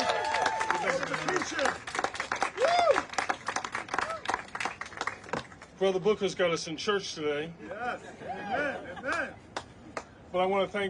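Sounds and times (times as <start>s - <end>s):
audience applause welcoming a congressman onto the stage: 0.0s - 5.5s
speech: 5.8s - 9.4s, 10.3s - 10.8s.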